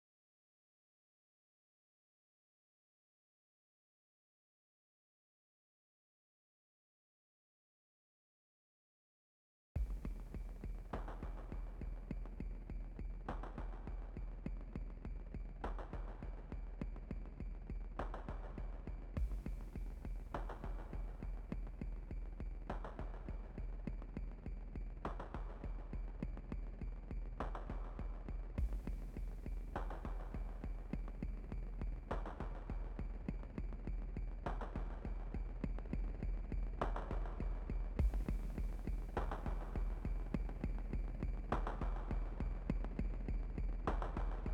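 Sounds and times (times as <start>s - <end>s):
percussion: 9.8s - 44.5s.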